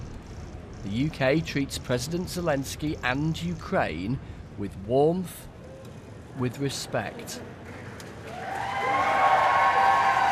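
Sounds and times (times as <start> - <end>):
speech: 0.8 - 5.5, 6.4 - 7.6
crowd cheering at the Foreign Office: 7.8 - 10.3.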